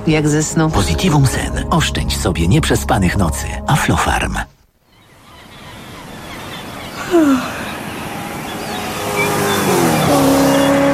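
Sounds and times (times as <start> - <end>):
speech: 0.0 - 4.6, 7.1 - 7.6
car engine revving as the vehicle drives in: 8.0 - 10.9.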